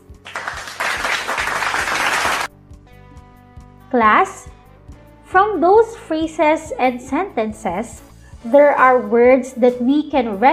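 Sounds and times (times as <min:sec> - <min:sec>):
class of children clapping loudly: 0:00.2 - 0:02.5
speech: 0:03.9 - 0:04.6, 0:05.3 - 0:10.5.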